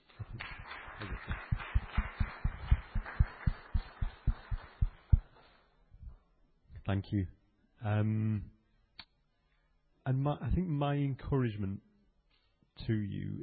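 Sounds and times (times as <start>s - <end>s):
ripple of applause: 0.0s - 5.7s
speech: 6.9s - 8.6s, 10.1s - 11.9s, 12.8s - 13.4s.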